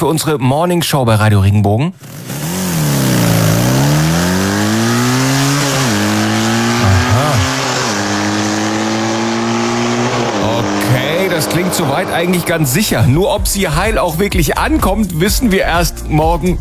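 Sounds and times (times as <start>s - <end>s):
speech: 0.0s - 2.4s, 11.4s - 16.5s
motocross bike engine revving: 2.0s - 14.6s.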